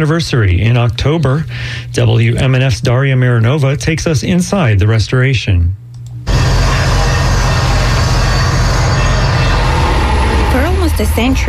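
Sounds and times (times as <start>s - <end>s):
speech: 0.0s - 5.8s, 11.0s - 11.4s
construction noise: 6.3s - 11.4s.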